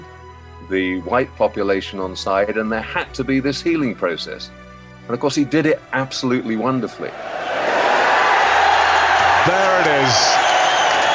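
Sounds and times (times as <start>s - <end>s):
speech: 0.7s - 7.4s, 9.5s - 10.4s
large stadium crowd cheering: 7.0s - 11.1s.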